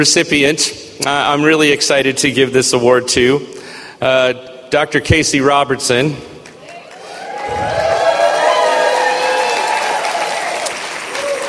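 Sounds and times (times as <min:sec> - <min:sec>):
speech: 0:00.0 - 0:06.3
audience applause for award recipient: 0:06.6 - 0:11.4.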